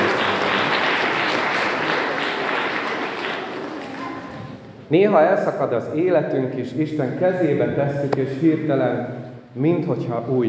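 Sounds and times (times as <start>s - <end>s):
audience applause: 0.0s - 4.3s
speech: 4.9s - 10.4s.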